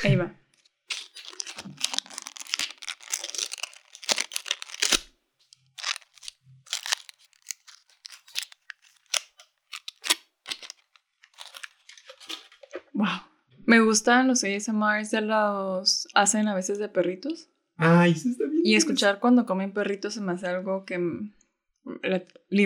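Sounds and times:
speech: 0:00.0 - 0:00.4, 0:13.0 - 0:22.6
foil wrappers on Ferrero Rocher chocolates crinkling while unwrapped: 0:00.9 - 0:12.7.

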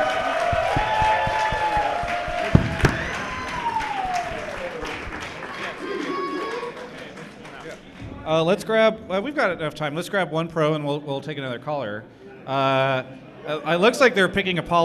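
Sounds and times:
whistles: 0:00.0 - 0:05.8
cheering voices: 0:00.0 - 0:07.3
crowd applauding: 0:00.0 - 0:08.0
speech: 0:08.3 - 0:14.8.

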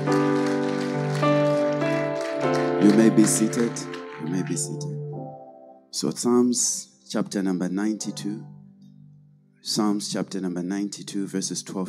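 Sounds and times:
audience clapping hands: 0:00.0 - 0:05.1
speech: 0:02.8 - 0:05.0, 0:05.9 - 0:08.6, 0:09.6 - 0:11.8.

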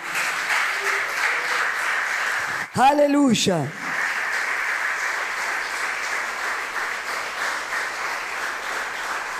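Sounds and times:
loud crowd applause: 0:00.0 - 0:09.3
speech: 0:02.8 - 0:03.8.

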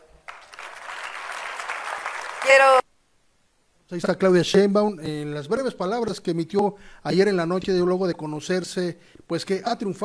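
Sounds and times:
audience applause: 0:00.2 - 0:02.8
speech: 0:02.4 - 0:02.8, 0:03.9 - 0:10.0.

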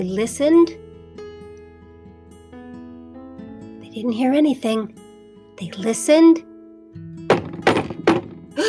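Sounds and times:
speech: 0:00.0 - 0:00.8, 0:04.0 - 0:05.0, 0:05.6 - 0:07.1
loud heavy knocks on a door: 0:07.3 - 0:08.5.

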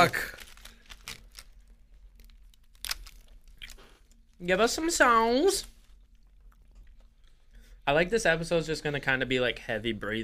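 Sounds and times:
speech: 0:00.0 - 0:00.4, 0:04.4 - 0:05.7, 0:07.9 - 0:10.2
package seal cracking open: 0:00.1 - 0:03.8.

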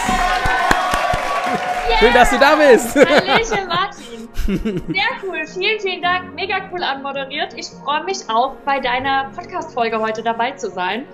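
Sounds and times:
applause and cheering: 0:00.0 - 0:03.8
laughter: 0:00.0 - 0:05.4
speech: 0:02.0 - 0:11.1.

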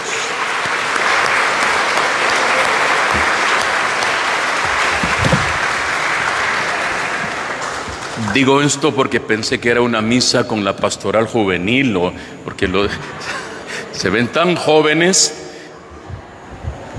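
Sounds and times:
audience applause for grandparents: 0:00.0 - 0:08.8
speech: 0:08.4 - 0:15.4
laughter: 0:12.8 - 0:14.2.

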